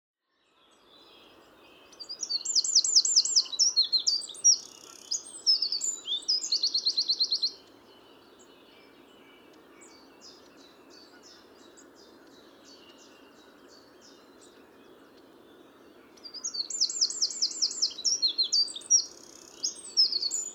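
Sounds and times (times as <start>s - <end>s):
Eurasian wren song: 0.5s - 20.5s.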